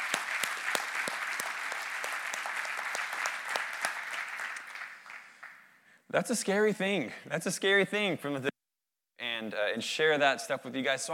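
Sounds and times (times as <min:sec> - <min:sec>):
church audience applause: 0:00.0 - 0:05.7
speech: 0:06.1 - 0:08.5, 0:09.6 - 0:11.1.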